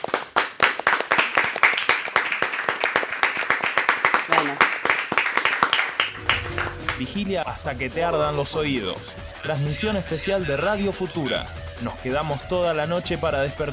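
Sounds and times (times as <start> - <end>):
applause: 0.0 - 7.2
speech: 7.0 - 13.7.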